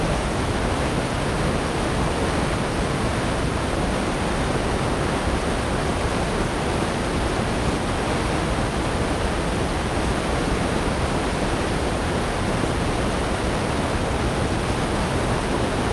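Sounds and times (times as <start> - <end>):
waterfall: 0.0 - 15.9.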